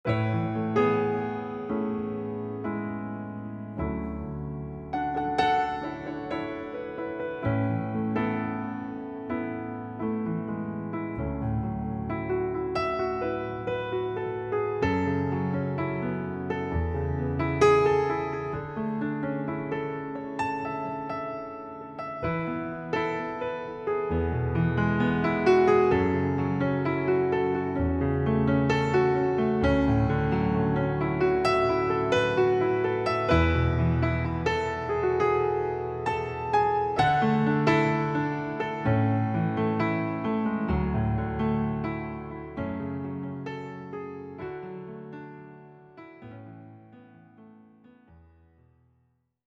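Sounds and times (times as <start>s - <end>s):
piano: 0.0s - 49.3s.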